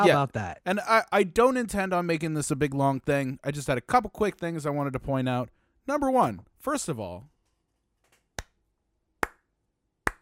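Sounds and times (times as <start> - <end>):
speech: 0.0 - 7.3
slow clap: 9.2 - 10.2.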